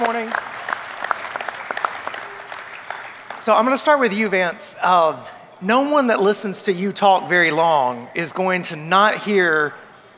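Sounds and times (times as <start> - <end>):
audience applause: 0.0 - 4.1
speech: 3.4 - 9.8.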